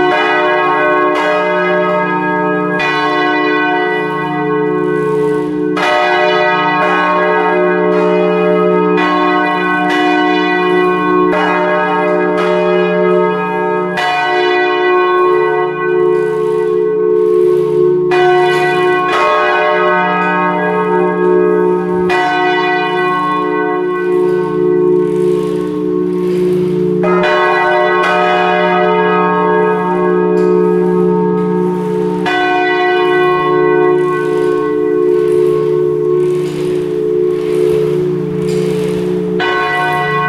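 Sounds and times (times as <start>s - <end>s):
church bells ringing on a Sunday: 0.0s - 40.2s.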